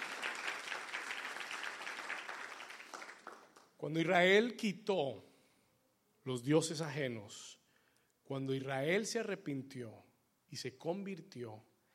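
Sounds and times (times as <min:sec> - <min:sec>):
audience applauding: 0:00.0 - 0:03.7
speech: 0:03.8 - 0:05.3, 0:06.3 - 0:07.6, 0:08.3 - 0:11.7.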